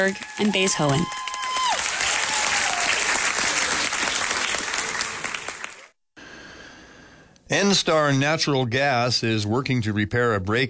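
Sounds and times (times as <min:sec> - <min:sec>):
speech: 0:00.0 - 0:01.2, 0:07.5 - 0:10.6
thunderous applause from theater audience: 0:00.0 - 0:05.9.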